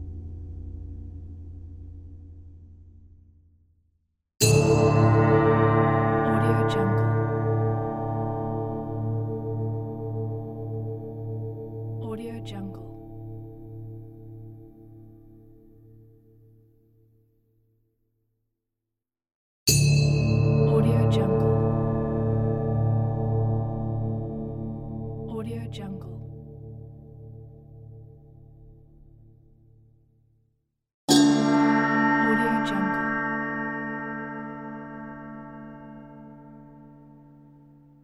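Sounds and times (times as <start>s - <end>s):
Asian gong: 4.4s - 15.7s, 19.7s - 25.3s, 31.1s - 38.0s.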